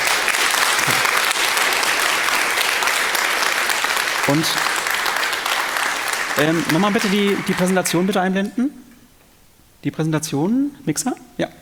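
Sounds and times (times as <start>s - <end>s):
audience applause: 0.0s - 8.3s
speech: 4.3s - 4.7s, 6.4s - 8.8s, 9.8s - 11.6s.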